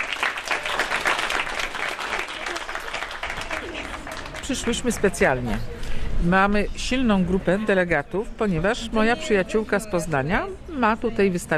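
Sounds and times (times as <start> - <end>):
crowd applauding: 0.0 - 5.5
speech: 4.5 - 11.5.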